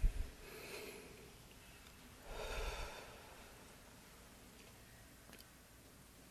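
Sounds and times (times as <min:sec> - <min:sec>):
group drawing a deep breath together during a prayer: 0:00.4 - 0:01.3, 0:02.2 - 0:03.7.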